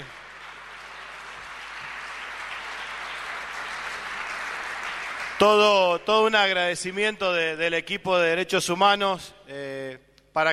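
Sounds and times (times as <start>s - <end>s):
crowd applauding: 0.0s - 6.3s
speech: 5.4s - 10.5s.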